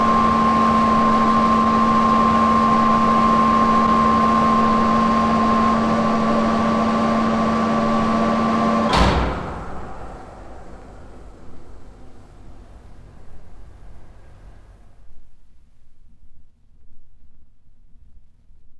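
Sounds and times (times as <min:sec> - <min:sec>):
sewage pump running: 0:00.0 - 0:15.0.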